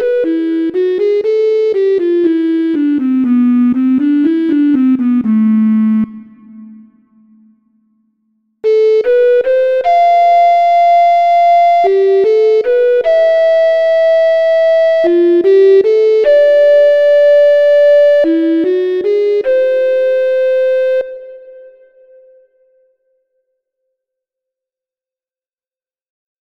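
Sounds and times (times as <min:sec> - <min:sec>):
melodic minor and natural minor scales played: 0:00.0 - 0:07.0, 0:08.6 - 0:22.4.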